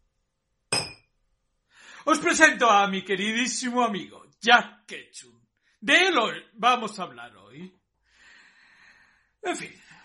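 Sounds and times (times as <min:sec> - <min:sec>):
glasses clinking in a toast: 0:00.7 - 0:01.1
speech: 0:02.0 - 0:07.8, 0:09.4 - 0:09.8.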